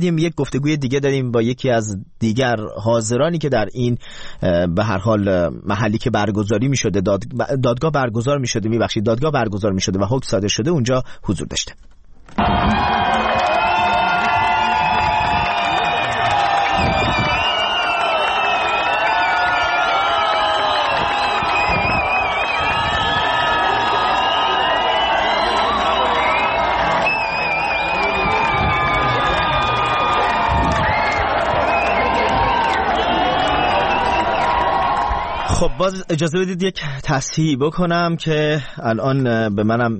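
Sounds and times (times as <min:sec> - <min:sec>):
speech: 0:00.0 - 0:13.0, 0:35.7 - 0:39.9
whistles: 0:12.4 - 0:35.6
crowd cheering and whooping as a Swedish court announces its verdict: 0:12.4 - 0:35.8.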